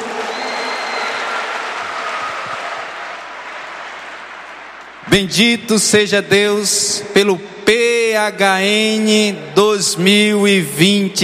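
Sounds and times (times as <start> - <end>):
large audience applauding: 0.0 - 5.0
speech: 5.1 - 11.2.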